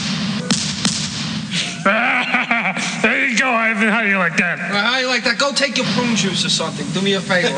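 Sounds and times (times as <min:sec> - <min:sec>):
shotgun blasts: 0:00.0 - 0:01.6
low hum: 0:00.0 - 0:07.5
laughter: 0:01.5 - 0:06.3
speech: 0:02.8 - 0:07.5.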